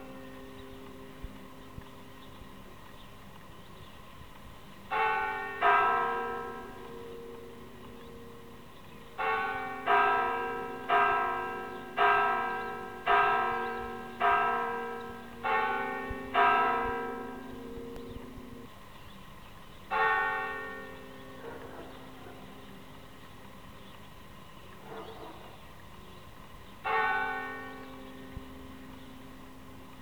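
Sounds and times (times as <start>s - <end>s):
church bells ringing a rogation toll in Sangüesa: 0.0s - 1.4s, 4.9s - 18.7s, 19.9s - 22.8s, 26.8s - 30.0s.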